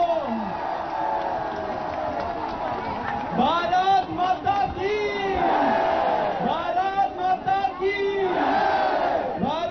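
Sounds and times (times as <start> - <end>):
crowd clapping at a public speech: 0.0 - 4.6
crowd cheering at a public speech: 0.0 - 9.6.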